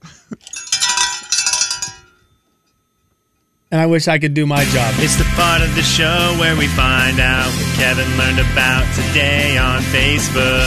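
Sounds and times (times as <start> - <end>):
bell ringing: 0.4 - 3.7
speech: 3.7 - 10.6.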